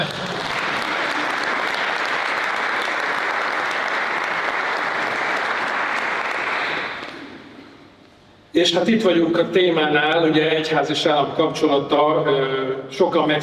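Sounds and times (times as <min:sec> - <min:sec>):
audience applause: 0:00.0 - 0:07.5
speech: 0:08.6 - 0:13.4.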